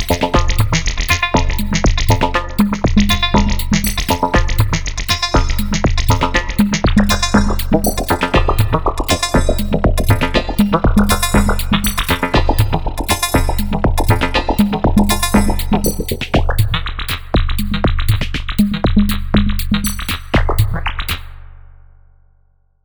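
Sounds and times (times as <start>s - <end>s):
synthesizer sequencer patterns: 0.0s - 20.9s.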